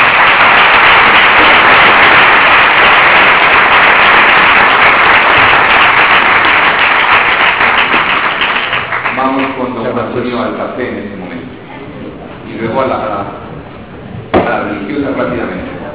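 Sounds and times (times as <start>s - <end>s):
audience applause: 0.0s - 9.8s
speech: 10.4s - 11.3s, 12.6s - 13.1s, 14.9s - 15.6s.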